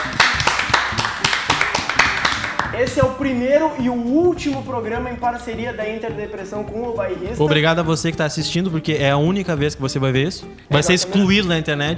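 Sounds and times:
hands clapping: 0:00.0 - 0:03.2
speech: 0:02.8 - 0:11.9.

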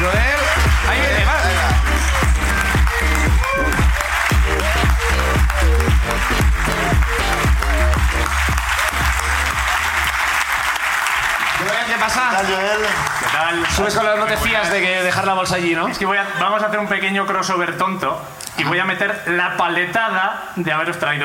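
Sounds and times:
audience applause: 0:00.0 - 0:15.0
speech: 0:13.8 - 0:21.2.

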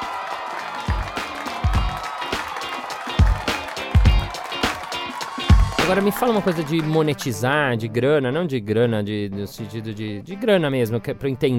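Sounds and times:
applause: 0:00.0 - 0:07.4
speech: 0:05.9 - 0:11.5.

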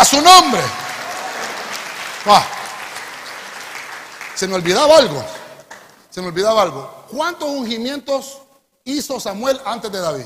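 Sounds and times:
audience clapping: 0:00.0 - 0:06.1
speech: 0:00.1 - 0:00.8, 0:02.2 - 0:02.6, 0:04.4 - 0:05.4, 0:06.1 - 0:10.2.

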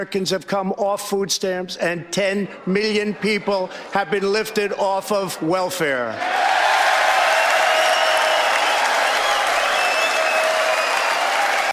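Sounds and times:
speech: 0:00.0 - 0:06.8
audience applause and cheering: 0:06.2 - 0:11.7.

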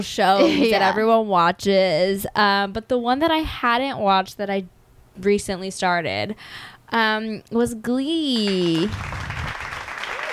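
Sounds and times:
speech: 0:00.0 - 0:09.3
applause sound effect from button: 0:08.4 - 0:10.3.

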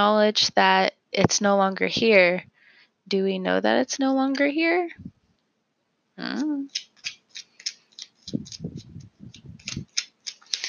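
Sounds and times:
speech: 0:00.0 - 0:02.5, 0:03.1 - 0:05.2, 0:06.2 - 0:06.9, 0:08.3 - 0:08.9
tarot cards shuffled with a card flipping out of the deck: 0:06.7 - 0:10.6.

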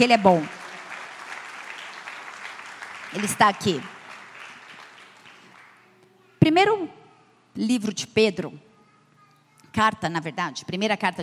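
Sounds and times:
speech: 0:00.0 - 0:00.6, 0:03.1 - 0:04.0, 0:06.5 - 0:07.0, 0:07.6 - 0:08.7, 0:09.8 - 0:11.2
audience applause: 0:00.0 - 0:05.8.

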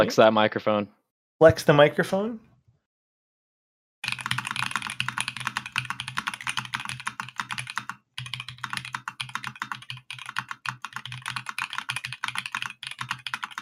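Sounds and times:
speech: 0:00.0 - 0:02.5
mechanical keyboard with Holy Panda switches typed fast in a typing test: 0:04.0 - 0:13.6.

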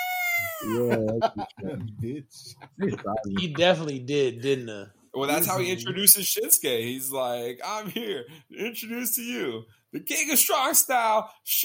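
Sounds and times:
voice imitating a wrestler's hype scream: 0:00.0 - 0:01.0
laughter: 0:00.4 - 0:03.9, 0:05.3 - 0:06.2
speech: 0:00.6 - 0:11.6.

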